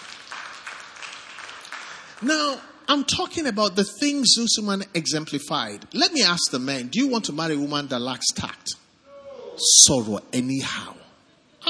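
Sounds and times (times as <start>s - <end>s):
audience clapping: 0.0s - 2.6s
speech: 2.2s - 8.8s, 9.6s - 11.1s.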